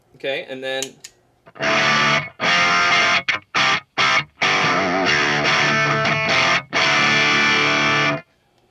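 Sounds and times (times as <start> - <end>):
speech: 0.2 - 2.4
electric guitar played through an amplifier: 1.5 - 8.2.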